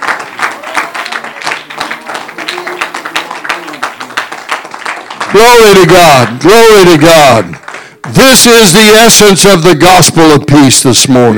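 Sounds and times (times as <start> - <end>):
audience clapping hands in praise: 0.0 - 9.1
speech: 5.3 - 11.3.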